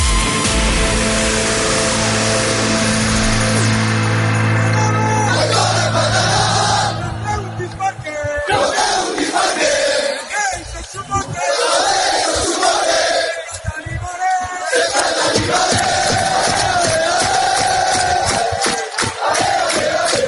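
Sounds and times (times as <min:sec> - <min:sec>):
football fans cheering: 0:00.0 - 0:20.2
football fans chanting: 0:04.9 - 0:13.7, 0:14.4 - 0:20.2.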